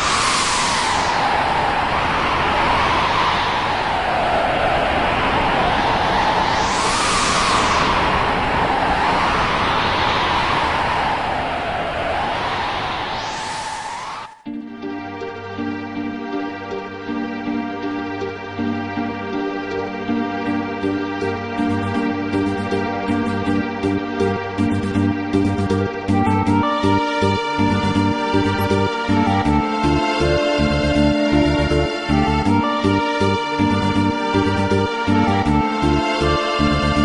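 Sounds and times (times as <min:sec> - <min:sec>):
wind blowing around Terra and Magitek soldiers in a video game scene: 0:00.0 - 0:37.0.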